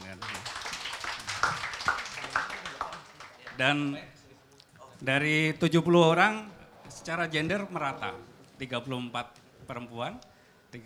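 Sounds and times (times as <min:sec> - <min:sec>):
audience applause: 0:00.0 - 0:03.6
speech: 0:03.6 - 0:04.1, 0:05.0 - 0:10.8.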